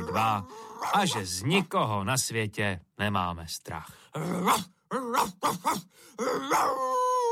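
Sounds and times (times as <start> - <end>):
speech: 0.1 - 7.0
dog barking: 4.4 - 5.9.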